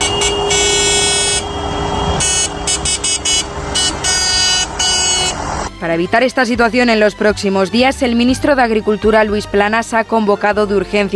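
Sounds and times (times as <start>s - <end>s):
tractor engine rumble: 0.0s - 5.7s
tractor horns honking at farmers' street protest in León: 0.0s - 5.7s
speech: 5.9s - 11.1s.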